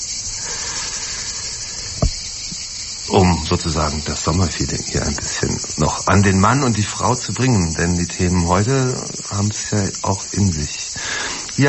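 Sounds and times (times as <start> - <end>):
cicadas chirring in summer heat: 0.0 - 11.6
low thump: 2.0 - 2.2
speech: 3.1 - 10.8.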